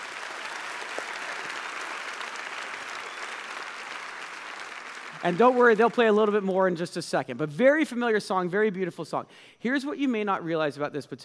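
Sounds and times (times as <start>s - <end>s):
crowd applause: 0.0s - 6.4s
speech: 5.2s - 11.2s.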